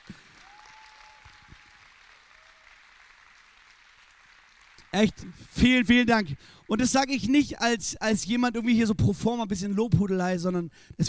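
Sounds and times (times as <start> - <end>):
audience applause: 0.0 - 6.8
speech: 4.9 - 11.0.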